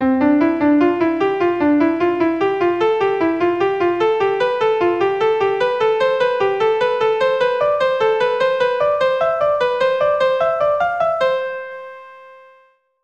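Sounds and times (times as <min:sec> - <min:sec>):
musical scale: 0:00.0 - 0:12.8.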